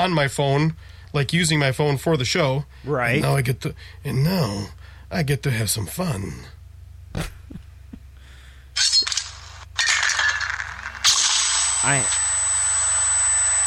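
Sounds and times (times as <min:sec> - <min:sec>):
speech: 0:00.0 - 0:06.6, 0:07.2 - 0:07.6, 0:11.8 - 0:12.2
sharp crack of fragmentation grenade: 0:08.8 - 0:11.8
high ringing tone: 0:11.0 - 0:13.6.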